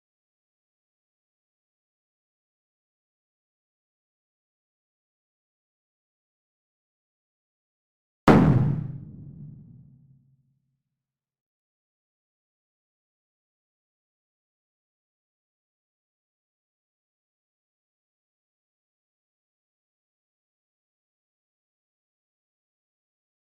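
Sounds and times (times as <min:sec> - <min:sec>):
clean explosions: 0:08.3 - 0:09.8.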